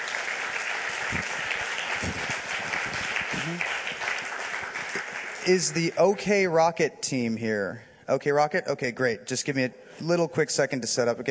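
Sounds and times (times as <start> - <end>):
audience applause: 0.0 - 6.1
speech: 1.1 - 1.3, 5.5 - 11.3.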